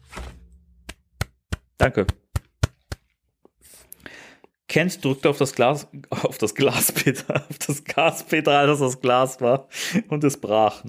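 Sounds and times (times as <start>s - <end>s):
hands clapping: 0.8s - 3.1s
speech: 1.8s - 2.2s, 4.7s - 10.8s
laughter: 6.5s - 8.3s.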